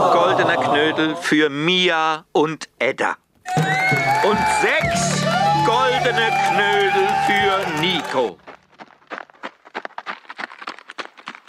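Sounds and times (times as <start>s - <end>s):
speech: 0.8s - 8.6s
hooves of a Przewalski's horse clip-clopping: 8.4s - 11.4s.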